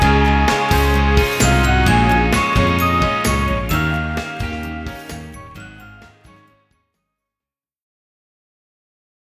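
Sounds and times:
charming chime: 0:00.0 - 0:06.6.

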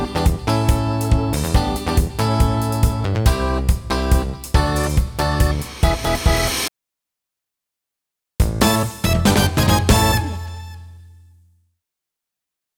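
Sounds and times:
background music: 0:00.0 - 0:06.7, 0:08.4 - 0:11.0.

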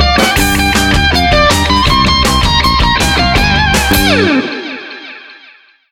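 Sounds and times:
mission complete jingle: 0:00.1 - 0:05.3.

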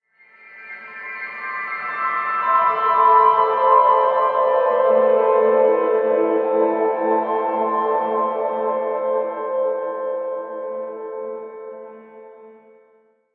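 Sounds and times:
piano: 0:00.4 - 0:13.0.

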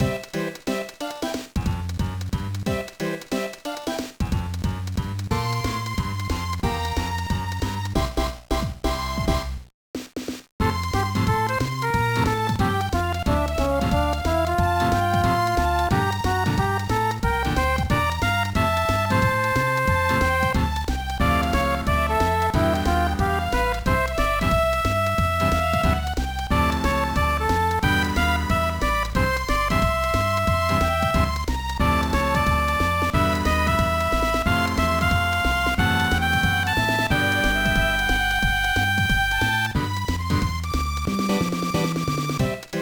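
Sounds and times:
background music: 0:00.0 - 0:09.6, 0:10.6 - 0:42.8.

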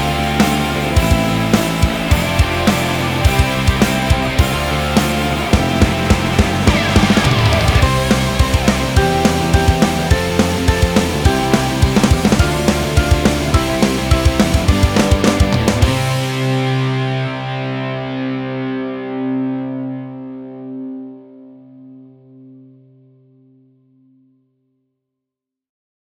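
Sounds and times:
rock music: 0:00.0 - 0:20.8.

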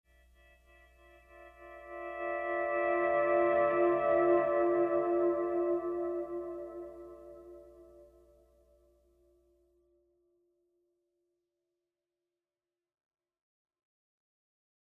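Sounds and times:
pleasant guitar music: 0:01.7 - 0:08.2.

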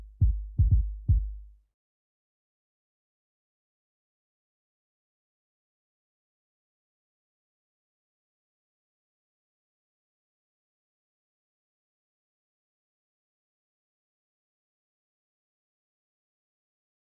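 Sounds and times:
kick drum: 0:00.0 - 0:01.5.

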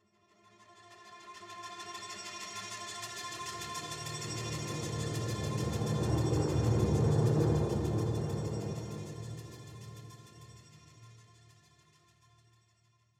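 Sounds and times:
spooky ship ambience: 0:04.2 - 0:10.1.

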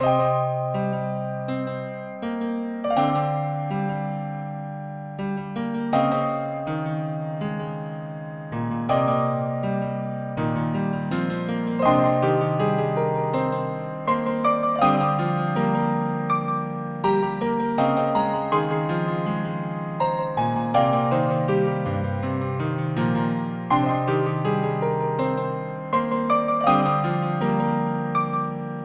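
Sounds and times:
piano: 0:00.0 - 0:28.8.

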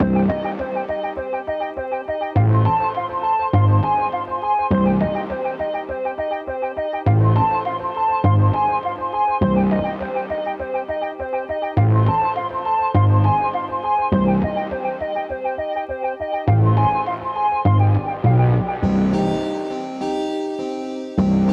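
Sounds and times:
theremin loop without drums: 0:00.0 - 0:21.5.

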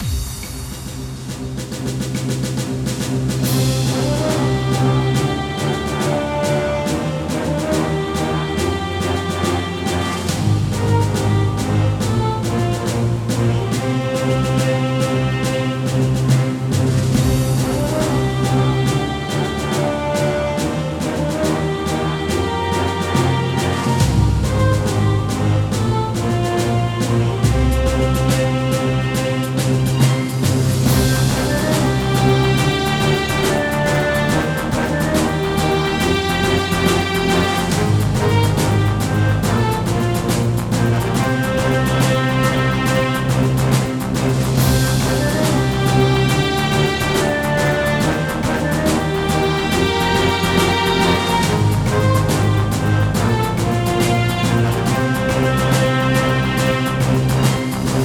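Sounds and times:
music: 0:00.0 - 0:58.0.

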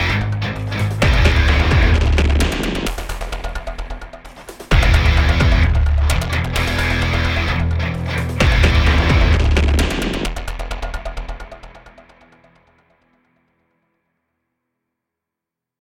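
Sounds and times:
heavy guitar riffs: 0:00.0 - 0:12.2.

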